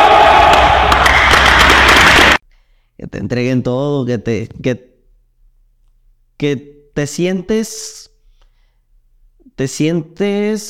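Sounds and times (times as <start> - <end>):
large crowd shouting a team chant: 0.0 - 2.4
speech: 3.2 - 4.9, 6.4 - 8.1, 9.5 - 10.6.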